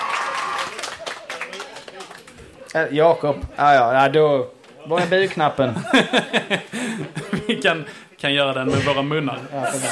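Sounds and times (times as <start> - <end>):
scattered applause from a small quiz audience: 0.0 - 2.4
speech: 2.8 - 9.9
laughter: 4.8 - 8.0, 9.4 - 9.9.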